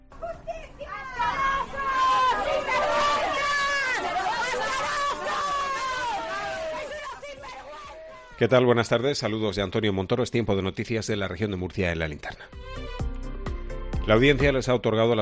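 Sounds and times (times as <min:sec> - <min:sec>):
crowd booing: 0:00.1 - 0:08.6
people shouting: 0:00.1 - 0:08.6
speech: 0:08.4 - 0:12.6, 0:14.1 - 0:15.2.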